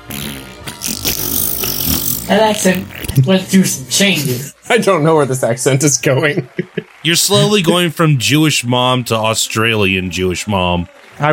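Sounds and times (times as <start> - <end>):
loud drawn-out fart noise: 0.0 - 3.2
speech: 2.3 - 11.3
laughter: 5.7 - 10.6.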